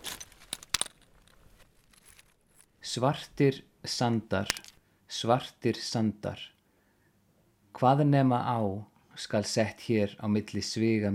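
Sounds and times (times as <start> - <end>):
high-pitched clinking of rocks: 0.0 - 2.7, 4.4 - 4.8
speech: 2.9 - 6.6, 7.8 - 11.1.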